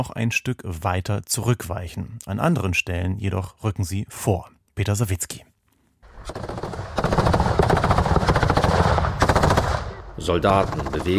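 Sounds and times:
speech: 0.0s - 5.5s, 6.2s - 6.7s, 10.2s - 11.1s
machine gun fire: 6.1s - 11.1s.

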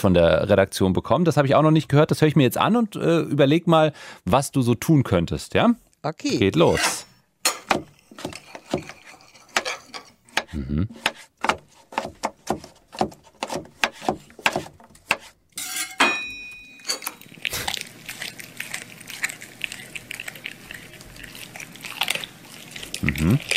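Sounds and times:
speech: 0.0s - 7.1s, 10.5s - 11.2s
something being chopped in a kitchen: 7.5s - 9.7s, 10.3s - 16.1s.

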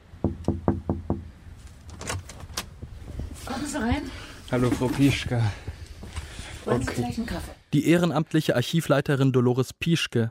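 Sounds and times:
knocking on a door: 0.2s - 1.4s
speech: 3.5s - 5.7s, 6.6s - 10.2s.

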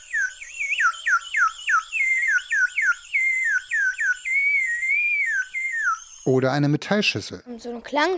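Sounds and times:
bird whistles: 0.0s - 6.4s
speech: 6.3s - 8.1s.

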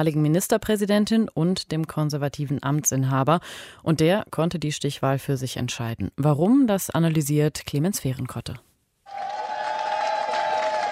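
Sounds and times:
speech: 0.0s - 9.3s
supporters cheering outside PNL party headquarters in Bucharest: 9.1s - 10.9s.

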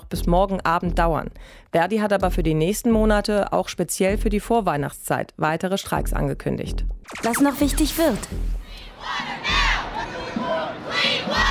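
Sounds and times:
speech: 0.1s - 9.5s
large crowd of climate protesters chanting and shouting: 7.1s - 11.5s.

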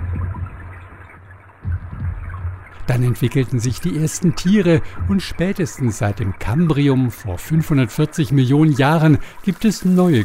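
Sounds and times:
speech: 2.9s - 10.2s
rain hissing over ocean water: 7.9s - 10.2s.

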